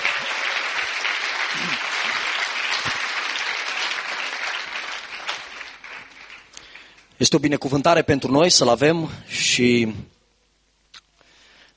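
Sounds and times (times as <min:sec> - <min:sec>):
audience applause: 0:00.0 - 0:07.1
speech: 0:07.2 - 0:10.2.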